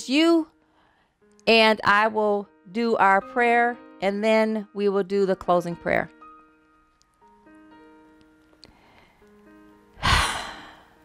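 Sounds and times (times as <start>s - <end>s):
speech: 0.0s - 0.5s, 1.5s - 6.2s
deep breath during a group prayer: 0.6s - 1.2s, 8.7s - 9.3s, 10.0s - 11.0s.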